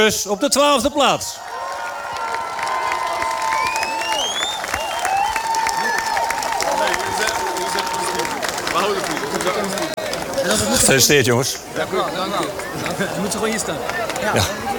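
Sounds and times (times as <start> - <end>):
speech: 0.0 - 1.6, 10.5 - 14.6
crowd cheering: 0.0 - 14.7
large crowd applause: 1.3 - 11.2, 11.8 - 14.7
rising whistles: 3.5 - 5.7.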